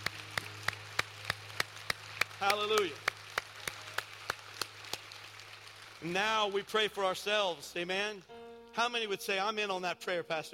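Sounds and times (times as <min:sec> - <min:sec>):
audience clapping: 0:00.0 - 0:08.3
speech: 0:02.4 - 0:03.1, 0:06.0 - 0:10.5.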